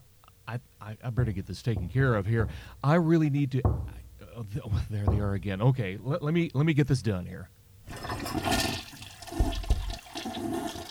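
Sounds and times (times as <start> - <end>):
speech: 0.5 - 8.7
low thumps: 1.1 - 6.1
toilet flushing: 7.9 - 10.9.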